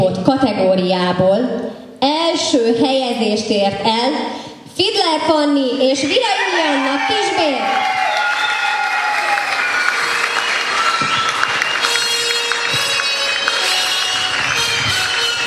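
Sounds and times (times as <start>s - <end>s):
speech: 0.0s - 8.0s
audience applause: 6.4s - 15.4s.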